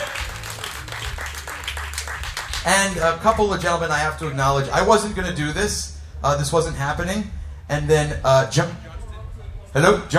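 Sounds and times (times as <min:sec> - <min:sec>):
audience applause: 0:00.0 - 0:04.4
speech: 0:02.6 - 0:08.8, 0:09.7 - 0:10.1.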